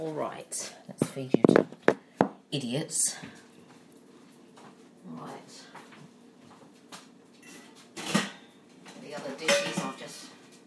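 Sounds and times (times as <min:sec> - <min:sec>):
speech: 0:00.0 - 0:01.8, 0:02.5 - 0:03.4
dishes and cutlery clanging while unloading dishwasher: 0:07.4 - 0:08.6, 0:09.3 - 0:10.2.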